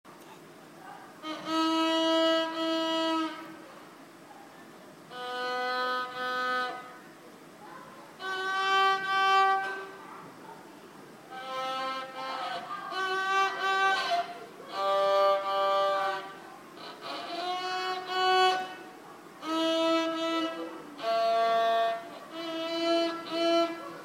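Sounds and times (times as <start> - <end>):
woman playing her violin: 1.2 - 3.6, 5.1 - 6.9, 8.2 - 10.0, 11.3 - 23.9.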